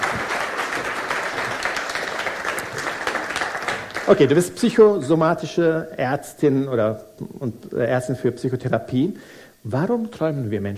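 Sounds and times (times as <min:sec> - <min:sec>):
audience applause welcoming a guest: 0:00.0 - 0:04.5
speech: 0:04.1 - 0:10.7.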